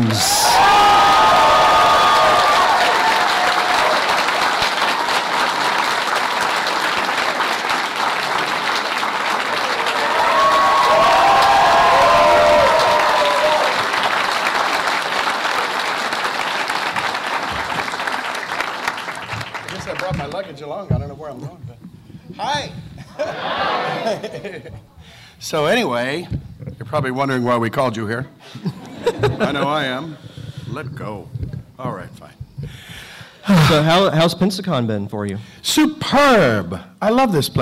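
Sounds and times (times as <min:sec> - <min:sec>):
audience applause: 0:00.0 - 0:20.8
speech: 0:00.1 - 0:00.4, 0:25.5 - 0:28.7, 0:29.3 - 0:32.2, 0:33.7 - 0:37.6
laughter: 0:23.0 - 0:25.0, 0:28.5 - 0:30.2.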